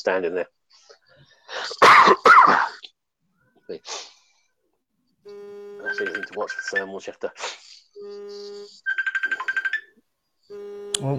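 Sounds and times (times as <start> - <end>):
speech: 0.0 - 0.6, 3.7 - 4.1, 5.2 - 8.2, 11.0 - 11.1
mobile phone ringtone: 5.3 - 6.9, 8.0 - 11.1.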